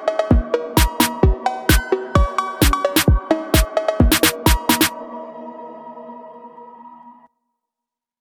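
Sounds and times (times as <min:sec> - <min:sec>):
phonk music: 0:00.0 - 0:05.1.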